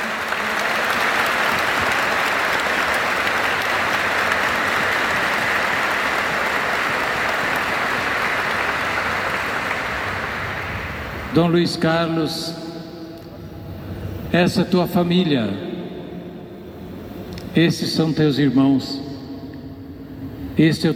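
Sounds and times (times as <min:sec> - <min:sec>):
audience applause for the church of São Carlos: 0:00.0 - 0:11.4
speech: 0:11.4 - 0:12.6, 0:14.3 - 0:15.7, 0:17.5 - 0:19.0, 0:20.6 - 0:20.9.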